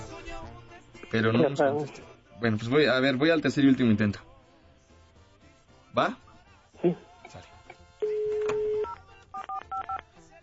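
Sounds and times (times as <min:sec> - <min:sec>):
speech: 0:01.1 - 0:04.3, 0:06.0 - 0:06.2, 0:06.8 - 0:07.5
telephone keypad tones as a number is dialed: 0:08.0 - 0:10.0.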